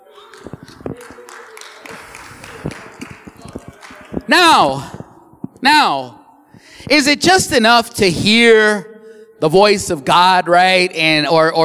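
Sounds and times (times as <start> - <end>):
audience applause: 0.0 - 4.3
speech: 4.3 - 5.0, 5.6 - 6.2, 6.9 - 11.6.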